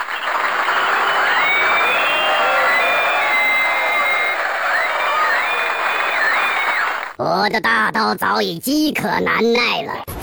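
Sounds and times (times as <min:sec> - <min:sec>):
warm applause: 0:00.0 - 0:07.2
speech: 0:07.4 - 0:10.1.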